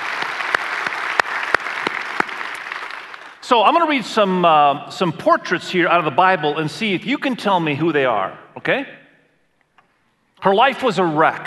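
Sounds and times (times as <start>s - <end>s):
church audience applause: 0.0s - 3.4s
speech: 3.5s - 9.0s, 10.4s - 11.4s.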